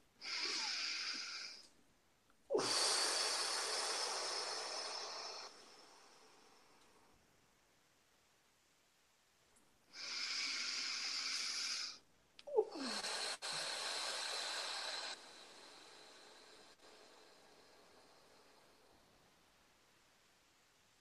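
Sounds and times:
deep slow breathing exercise: 0:00.2 - 0:01.7, 0:02.5 - 0:07.2, 0:09.9 - 0:19.4.

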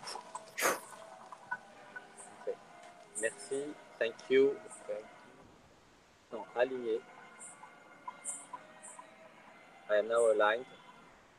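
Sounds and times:
short sharp puff of breath blown out during a guided alignment meditation: 0:00.0 - 0:00.8
speech: 0:03.2 - 0:05.2, 0:06.3 - 0:07.1, 0:09.9 - 0:10.8.

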